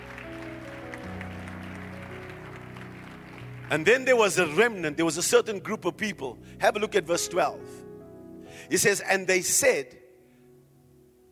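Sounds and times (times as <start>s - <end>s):
audience clapping their hands: 0.0s - 4.9s
speech: 3.7s - 7.8s, 8.6s - 10.0s.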